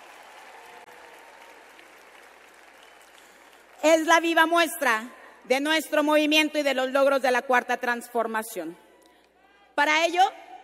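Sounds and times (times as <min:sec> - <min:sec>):
loud applause: 0:00.0 - 0:04.1
speech: 0:03.8 - 0:08.8, 0:09.8 - 0:10.4.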